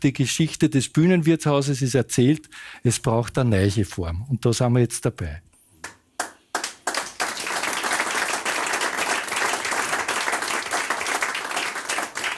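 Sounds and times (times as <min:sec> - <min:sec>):
speech: 0:00.0 - 0:05.5
audience applause: 0:06.5 - 0:12.3.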